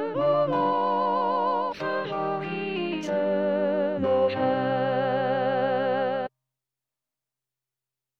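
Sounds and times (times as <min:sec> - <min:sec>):
soprano singing: 0:00.0 - 0:06.3.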